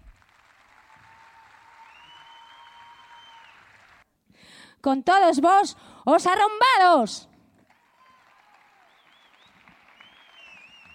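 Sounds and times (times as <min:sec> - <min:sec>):
audience applause: 0:00.0 - 0:04.0, 0:07.6 - 0:10.9
speech: 0:04.8 - 0:07.3.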